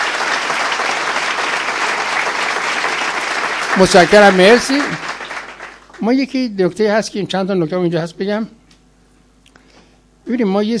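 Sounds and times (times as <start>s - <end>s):
meeting audience applause: 0.0s - 6.1s
speech: 3.8s - 5.1s, 6.0s - 8.6s, 10.3s - 10.7s.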